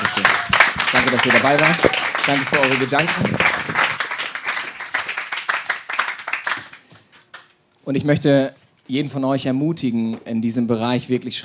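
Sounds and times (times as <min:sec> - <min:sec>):
audience applause: 0:00.0 - 0:07.4
speech: 0:01.1 - 0:03.6, 0:07.9 - 0:11.4.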